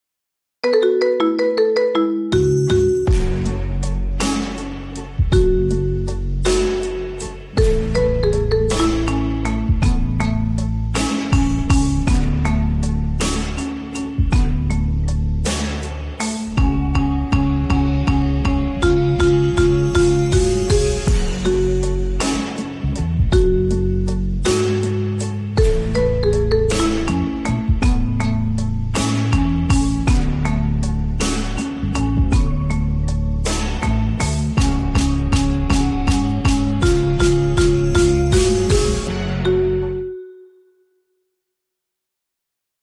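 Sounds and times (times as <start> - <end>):
marimba: 0.6 - 40.6.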